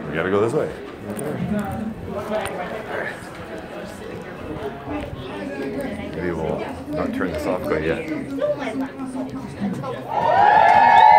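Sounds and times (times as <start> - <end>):
speech: 0.1 - 3.4, 4.5 - 11.0
crowd cheering: 10.0 - 11.1.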